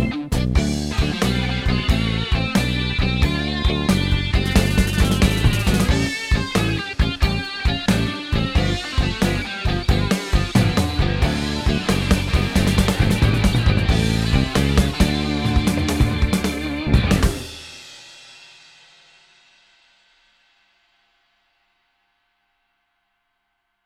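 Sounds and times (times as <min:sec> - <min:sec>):
one-finger blues background music: 0:00.0 - 0:17.9.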